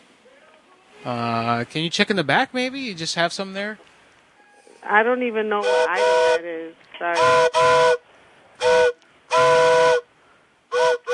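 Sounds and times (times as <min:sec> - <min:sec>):
soft hiss: 0:00.0 - 0:05.6, 0:07.9 - 0:10.8
speech: 0:01.0 - 0:03.9, 0:04.8 - 0:08.0
approaching train's whistle blasts: 0:05.6 - 0:06.4, 0:07.2 - 0:08.0, 0:08.6 - 0:10.1, 0:10.7 - 0:11.1.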